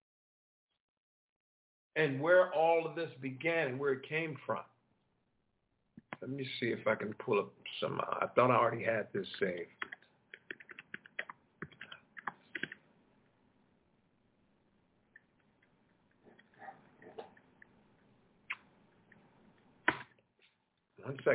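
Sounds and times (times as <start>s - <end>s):
speech: 2.0s - 4.7s, 6.2s - 10.0s, 21.1s - 21.3s
typing on a computer keyboard: 9.8s - 12.8s.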